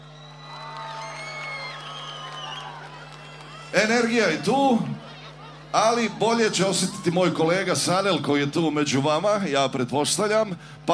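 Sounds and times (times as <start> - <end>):
high whistles and shouts: 0.0 - 2.8
audience cheering at a live event: 0.0 - 8.3
low steady hum: 0.0 - 10.9
speech: 3.7 - 5.0, 5.7 - 10.9.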